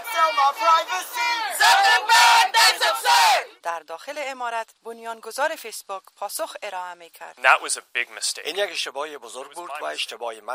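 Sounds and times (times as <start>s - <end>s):
protesters chanting and shouting demanding Facebook reform outside Congress: 0.0s - 3.5s
speech: 0.3s - 2.2s, 3.0s - 10.5s.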